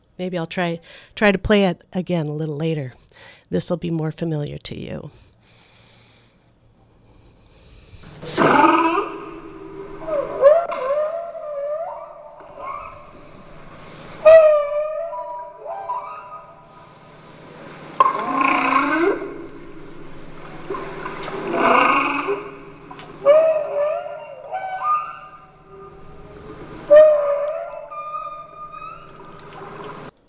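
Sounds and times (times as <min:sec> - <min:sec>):
speech: 0:00.2 - 0:05.3
steady low hum: 0:05.0 - 0:30.2
whale calls recorded in the deep sea: 0:08.0 - 0:30.1.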